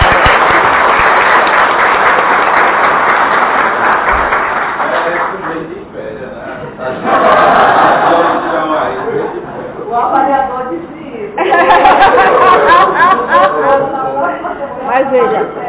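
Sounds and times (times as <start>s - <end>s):
audience applauding: 0.0s - 5.8s
laughter: 6.5s - 9.8s, 11.4s - 15.3s.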